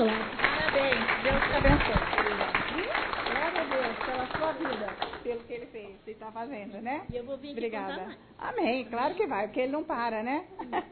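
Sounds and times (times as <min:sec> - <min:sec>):
audience applause: 0:00.0 - 0:05.3
speech: 0:06.3 - 0:10.9.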